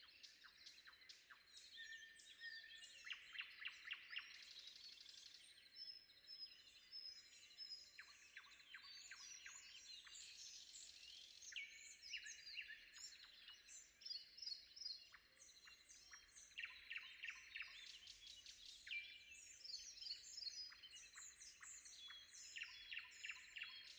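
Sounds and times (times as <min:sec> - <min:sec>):
overlapping birdsong from several birds: 0:00.0 - 0:23.9.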